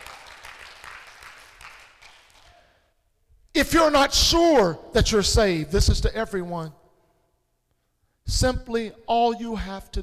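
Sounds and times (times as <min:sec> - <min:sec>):
audience clapping hands: 0:00.0 - 0:02.7
speech: 0:03.6 - 0:06.8, 0:08.3 - 0:10.0.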